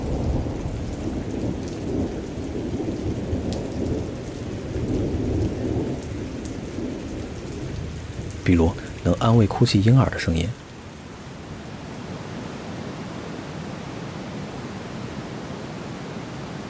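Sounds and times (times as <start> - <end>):
rolling rumble of thunder: 0.0 - 9.8
heavy rain pouring in a thunderstorm: 0.0 - 16.6
speech: 8.5 - 10.6.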